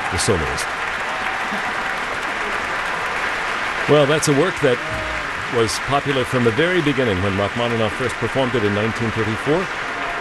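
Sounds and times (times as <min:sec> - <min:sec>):
concert hall audience cheering and applauding: 0:00.0 - 0:07.8
speech: 0:00.2 - 0:01.8, 0:03.9 - 0:09.8.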